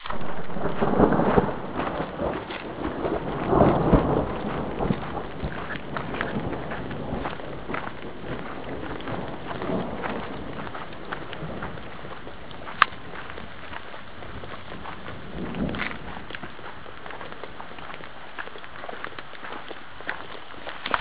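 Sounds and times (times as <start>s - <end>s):
thunderstorm: 0.0s - 18.1s.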